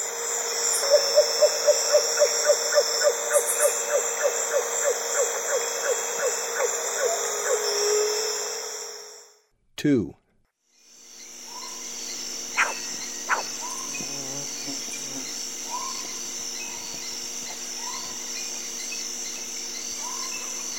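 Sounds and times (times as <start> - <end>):
striped owl giving a downslurred whistle: 0.3 - 8.9, 20.0 - 20.6.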